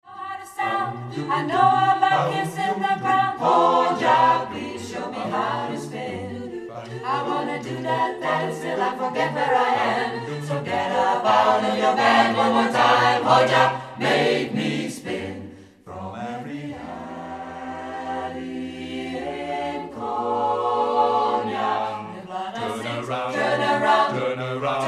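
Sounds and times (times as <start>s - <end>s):
five-part choir singing: 0.1s - 24.8s.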